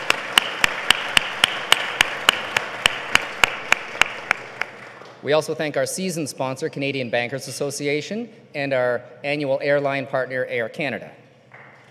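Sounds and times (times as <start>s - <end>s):
audience applause: 0.0s - 5.0s
sharp evenly timed clap: 0.0s - 5.2s
speech: 5.2s - 11.2s.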